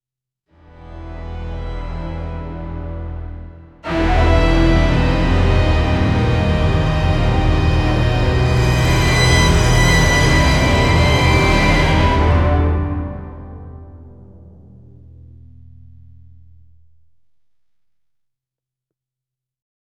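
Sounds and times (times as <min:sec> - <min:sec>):
intensely scary dissonant suspense music: 0:02.8 - 0:17.5.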